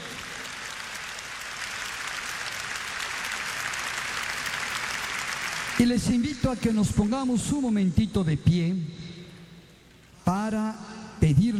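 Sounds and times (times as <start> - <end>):
applause: 0.0 - 7.3
speech: 5.8 - 9.0, 10.3 - 11.5.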